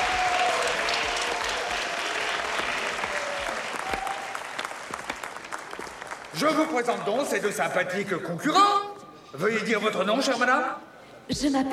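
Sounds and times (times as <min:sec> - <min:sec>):
audience applause: 0:00.0 - 0:07.0
speech: 0:06.4 - 0:11.7.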